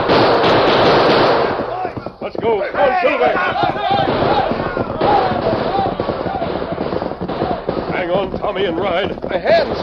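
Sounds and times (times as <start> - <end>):
rapid gunfire in a radio drama shootout with riders on horseback: 0.0 - 9.8
urgent shouting voices: 1.7 - 7.8
speech: 2.5 - 4.2, 8.5 - 9.8.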